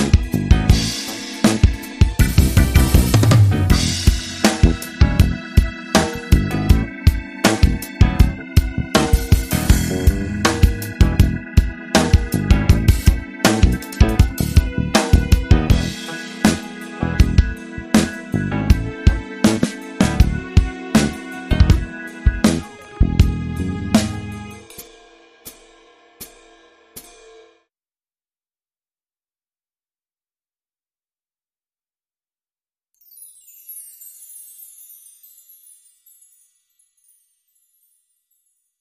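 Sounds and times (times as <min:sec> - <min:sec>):
piano bar music: 0:00.0 - 0:24.8.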